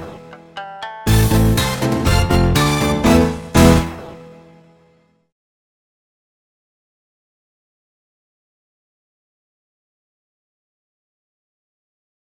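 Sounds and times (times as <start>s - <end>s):
duet music: 0.0s - 4.4s.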